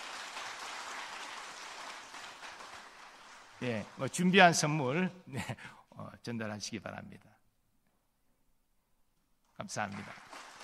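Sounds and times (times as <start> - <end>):
audience applause: 0.0 - 4.8, 9.7 - 10.6
speech: 3.6 - 7.3, 9.6 - 10.4.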